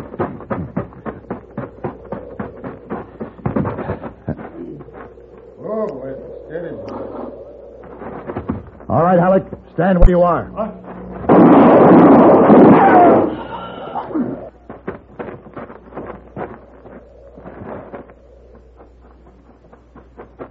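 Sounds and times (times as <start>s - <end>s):
speech: 9.0s - 10.8s
gunshot in a western scene: 11.3s - 13.4s.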